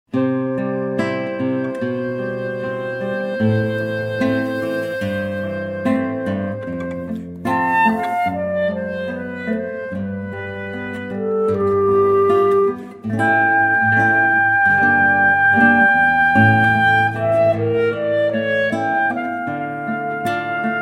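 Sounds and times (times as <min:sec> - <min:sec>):
classical piece: 0:00.1 - 0:20.8.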